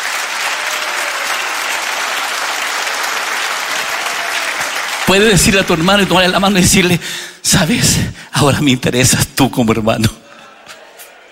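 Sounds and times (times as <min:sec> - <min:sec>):
audience applauding: 0:00.0 - 0:07.0
speech: 0:05.1 - 0:10.2.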